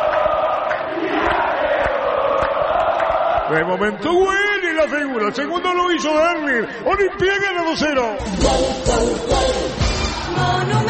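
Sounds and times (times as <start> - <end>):
football supporters chanting and singing in the north stand at a football match: 0.0 - 5.6, 8.2 - 10.8
speech: 3.5 - 9.8, 10.4 - 10.8.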